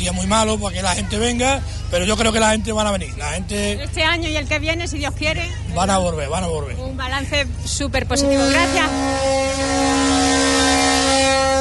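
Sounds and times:
speech: 0.0 - 10.2
boat horn: 8.1 - 11.5.

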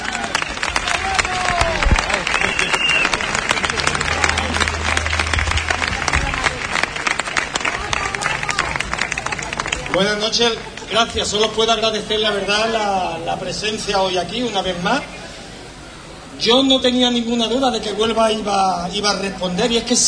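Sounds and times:
audience applause: 0.0 - 11.6
speech: 10.0 - 15.1, 16.4 - 20.0.

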